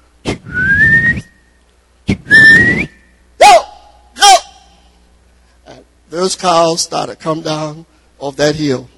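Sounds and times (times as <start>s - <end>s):
loud human whistles as herding call: 0.2s - 3.6s
speech: 6.1s - 8.9s.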